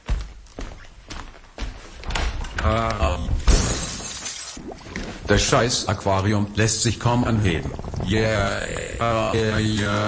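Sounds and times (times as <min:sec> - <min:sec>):
speech: 0:02.6 - 0:03.3, 0:05.3 - 0:10.0
window glass shattering as an armchair is thrown through it: 0:03.5 - 0:04.6.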